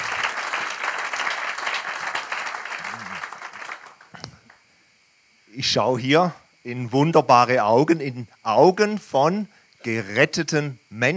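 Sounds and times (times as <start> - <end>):
audience applause: 0.0 - 4.2
speech: 5.6 - 11.1.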